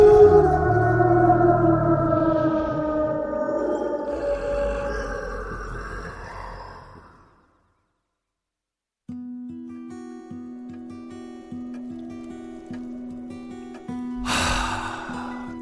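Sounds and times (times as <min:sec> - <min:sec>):
terrifying beast roar: 0:00.0 - 0:07.6.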